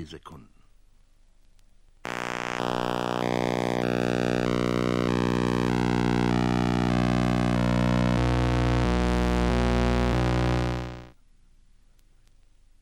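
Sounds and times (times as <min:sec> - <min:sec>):
impulse: 0:02.1 - 0:11.1.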